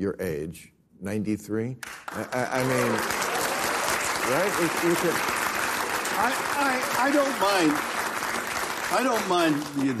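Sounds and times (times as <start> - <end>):
speech: 0.0 - 3.4, 4.2 - 5.4, 6.2 - 8.0, 8.9 - 9.9
audience clapping: 1.8 - 9.9
people cheering: 2.2 - 9.9.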